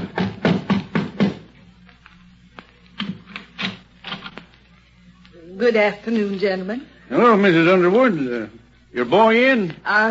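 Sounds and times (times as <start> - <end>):
knocks on a wooden front door: 0.0 - 1.5
speech: 5.6 - 10.1.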